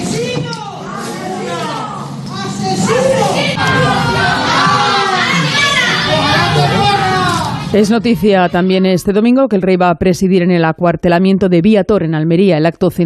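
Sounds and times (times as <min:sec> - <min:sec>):
neighbours shouting at a suspect: 0:00.0 - 0:07.7
speech: 0:07.7 - 0:13.0.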